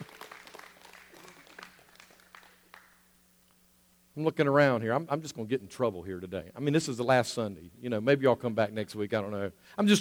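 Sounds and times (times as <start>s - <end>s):
audience clapping: 0.0s - 3.0s
speech: 4.2s - 10.0s.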